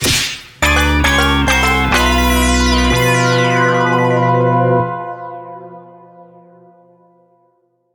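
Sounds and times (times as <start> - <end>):
game over jingle: 0.6 - 6.9.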